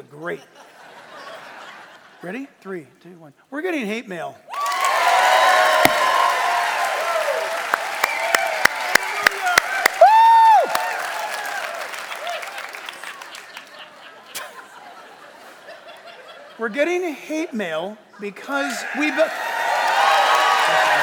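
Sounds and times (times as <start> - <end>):
speech: 0.0 - 0.8, 2.2 - 4.5, 16.6 - 19.5
laughter: 0.4 - 2.3, 10.7 - 17.3, 18.2 - 21.0
audience clapping: 4.5 - 14.2, 19.4 - 21.0.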